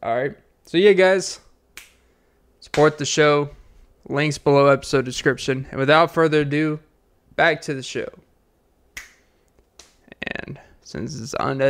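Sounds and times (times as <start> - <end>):
speech: 0.0 - 1.4, 2.7 - 8.2, 10.2 - 11.6
finger snaps: 1.8 - 2.1, 9.0 - 10.1.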